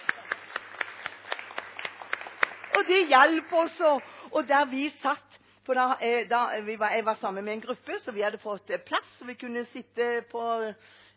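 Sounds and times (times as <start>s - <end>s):
rhythmic audience clapping at a women's gathering: 0.0s - 4.2s
speech: 2.8s - 11.1s.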